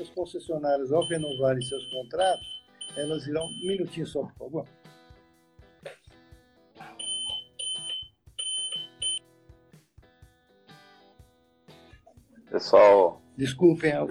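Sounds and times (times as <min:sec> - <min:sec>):
speech: 0:00.0 - 0:05.0, 0:12.6 - 0:14.0
computer beeping: 0:01.0 - 0:03.8, 0:07.0 - 0:09.2.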